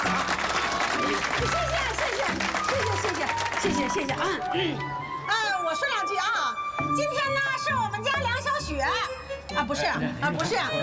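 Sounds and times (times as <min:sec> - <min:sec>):
audience applause: 0:00.0 - 0:04.5
speech: 0:01.4 - 0:01.6, 0:03.6 - 0:05.1, 0:05.7 - 0:10.8.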